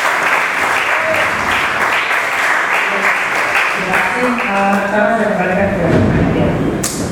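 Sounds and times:
audience applause at a book discussion event: 0.0 - 5.2
speech: 4.2 - 7.0.

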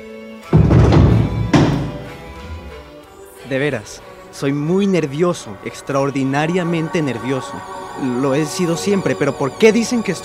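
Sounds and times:
door being shut firmly: 0.6 - 3.0
speech: 3.5 - 10.2.

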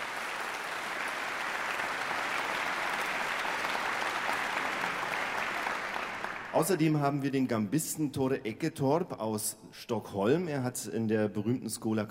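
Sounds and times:
audience applause: 0.0 - 7.0
speech: 6.6 - 12.0.

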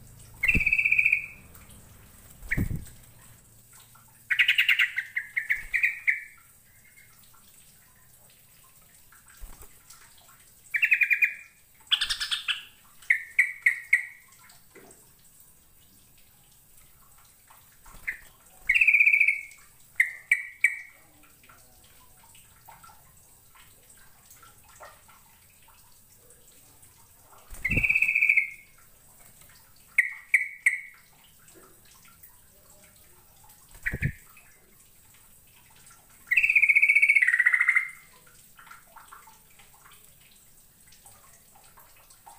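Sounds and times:
bird chirping and trilling: 0.4 - 1.5, 2.4 - 2.9, 4.3 - 6.4, 10.8 - 14.2, 18.0 - 21.0, 27.5 - 28.7, 30.0 - 31.0, 33.7 - 34.2, 36.3 - 38.1.

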